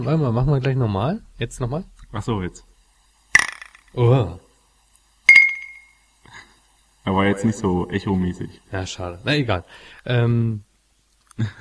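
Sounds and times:
speech: 0.0 - 2.7, 3.9 - 4.4, 7.0 - 10.7, 11.4 - 11.6
clear high ringing tone of glass: 5.3 - 6.0
drinking glass clinking against glass in a toast: 5.3 - 6.0.

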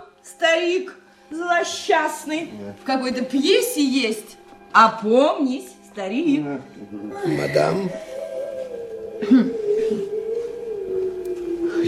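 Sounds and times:
speech: 0.3 - 8.2, 9.2 - 9.6
tied-up dog howling: 6.4 - 11.8.

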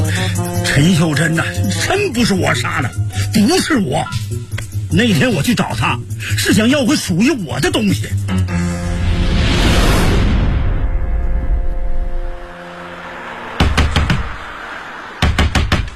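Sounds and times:
speech: 0.8 - 8.6
low rumbling whoosh: 8.5 - 13.6
person demanding money back pounding on a door: 13.6 - 14.4, 15.2 - 15.9.

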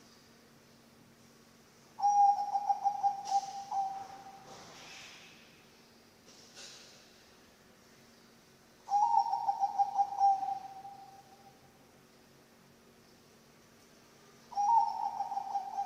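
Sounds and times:
zebra dove cooing: 2.0 - 4.7, 8.9 - 11.3, 14.5 - 15.8.

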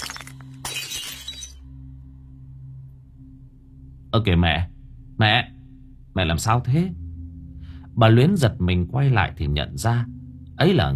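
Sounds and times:
ceramic rice bowl falling and shattering on the floor: 0.0 - 1.6
low steady hum: 0.0 - 10.9
speech: 4.1 - 5.5, 6.2 - 7.0, 8.0 - 10.9.

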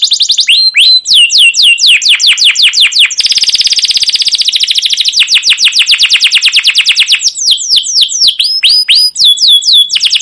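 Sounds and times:
canary singing: 0.0 - 10.2.

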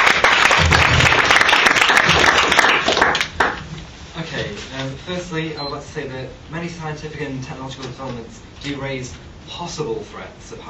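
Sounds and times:
crowd applauding: 0.0 - 3.6
speech: 5.1 - 10.6.

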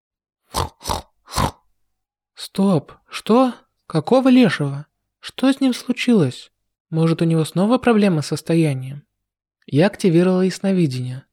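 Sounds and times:
man making pig-like grunts: 0.5 - 1.6
speech: 2.5 - 11.3.

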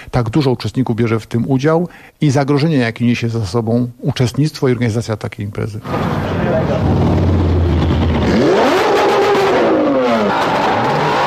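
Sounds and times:
speech: 0.1 - 7.2
steady noise: 0.2 - 8.4
car engine idling and revving at an illegal street race: 5.8 - 11.2.

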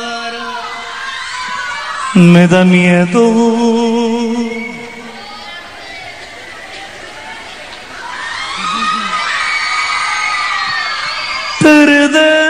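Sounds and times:
crowd cheering, whooping and applauding at a live anniversary concert: 0.5 - 2.3, 5.1 - 12.3
speech: 2.2 - 3.7.

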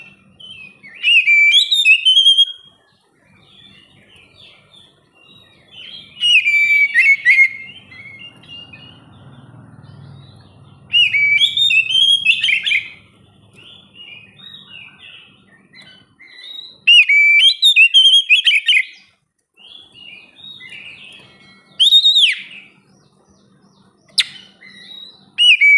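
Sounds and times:
Oriental magpie-robin song: 0.0 - 25.7.

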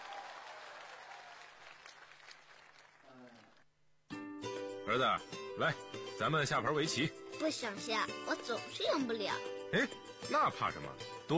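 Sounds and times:
audience applause: 0.0 - 3.6
speech: 4.9 - 11.3.

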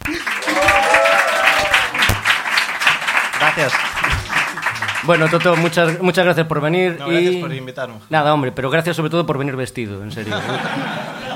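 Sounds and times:
audience applause: 0.0 - 6.0
speech: 3.6 - 4.2, 5.0 - 11.2
laughter: 10.1 - 11.3.

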